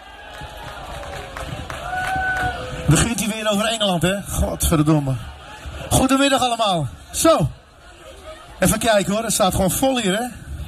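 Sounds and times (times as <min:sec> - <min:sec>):
audience applause: 0:00.0 - 0:03.6
audience cheering: 0:00.0 - 0:06.3
speech: 0:02.9 - 0:05.3, 0:06.0 - 0:07.6, 0:08.6 - 0:10.4.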